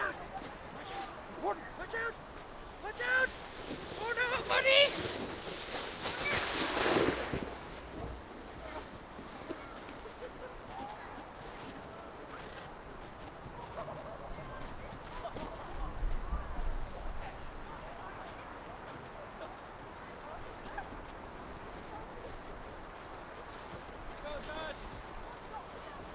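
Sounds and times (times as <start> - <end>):
crowd walla outdoors on a snow hill: 0.0 - 26.1
people playing in snow: 0.0 - 26.1
sleds passing fast on a snow hill: 0.0 - 26.1
people laughing: 9.9 - 10.8, 13.6 - 15.9.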